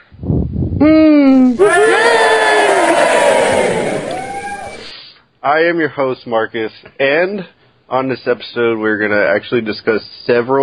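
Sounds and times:
speech: 0.8 - 1.6, 5.5 - 10.6
group cheering yay: 1.4 - 4.9.

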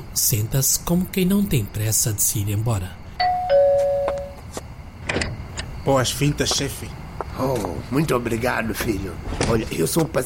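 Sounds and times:
speech: 0.2 - 3.0, 5.9 - 10.2
doorbell chiming: 3.2 - 4.4.

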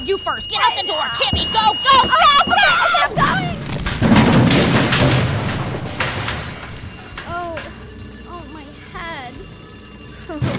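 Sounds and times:
ringing tone: 0.0 - 3.6, 5.9 - 10.5
speech: 0.1 - 3.6
crackling debris: 0.2 - 7.8
house explosion: 0.8 - 7.2.

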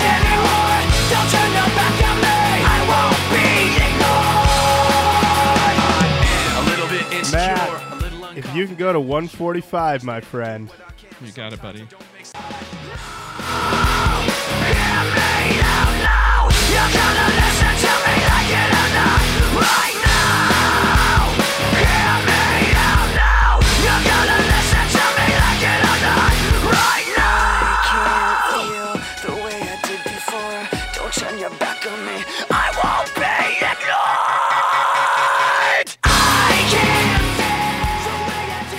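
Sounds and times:
loud rock song with screamed vocals: 0.0 - 8.6, 12.0 - 38.7
speech: 8.6 - 20.0.

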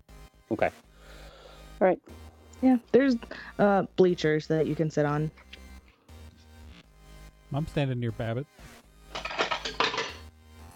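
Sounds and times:
speech: 0.5 - 0.9, 1.8 - 5.4, 7.5 - 8.7
metal spoon dropped onto the floor: 9.2 - 10.2.

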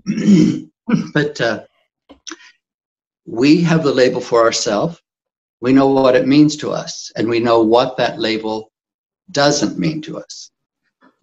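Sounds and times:
throat clearing: 0.0 - 1.4
speech: 0.1 - 1.7, 3.2 - 5.0, 5.6 - 8.7, 9.3 - 10.5.

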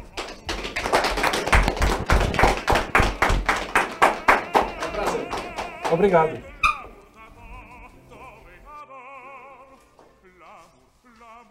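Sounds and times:
hands clapping: 0.0 - 6.4
speech: 5.9 - 6.5.

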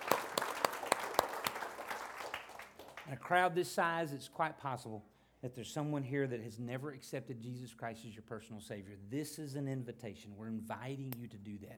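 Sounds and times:
church congregation applauding: 0.0 - 3.3
speech: 3.1 - 11.7.

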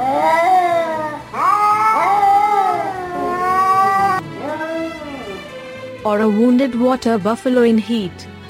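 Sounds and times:
cat yowling: 0.0 - 5.6
speech: 6.1 - 8.4.

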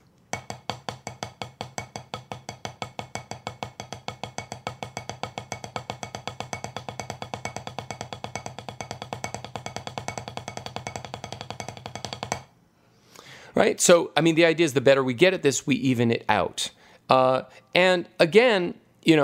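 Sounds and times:
drum double stroke roll played evenly: 0.6 - 12.5
speech: 13.6 - 19.2.

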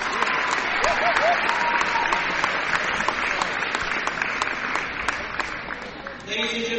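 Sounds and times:
whistles and cheers: 0.0 - 2.5
gym crowd clapping for game officials: 0.0 - 6.6.

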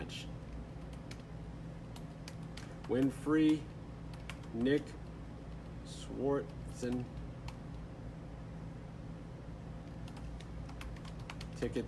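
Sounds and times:
low steady hum: 0.0 - 11.8
faint keyboard typing as a message is written: 0.5 - 7.9, 9.8 - 11.8
speech: 2.9 - 3.8, 4.5 - 5.0, 6.1 - 7.2, 11.6 - 11.8.

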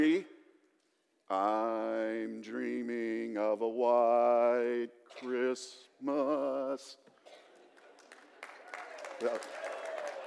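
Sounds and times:
speech: 1.3 - 7.0, 9.2 - 9.6
scattered audience clapping: 7.1 - 10.2.

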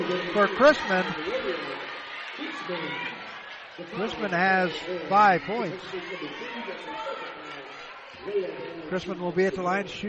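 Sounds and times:
crowd chatter in basketball arena: 0.0 - 10.0
speech: 0.1 - 1.8, 2.7 - 3.2, 3.8 - 7.4, 8.2 - 10.0.

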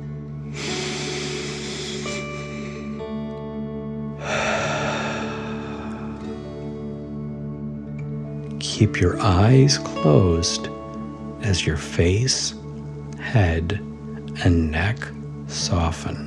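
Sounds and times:
sustained tonal music: 0.0 - 16.2
deep breath in and out during a guided relaxation: 0.4 - 3.3, 4.1 - 7.5
speech: 8.8 - 10.8, 11.4 - 12.6, 13.2 - 16.2.

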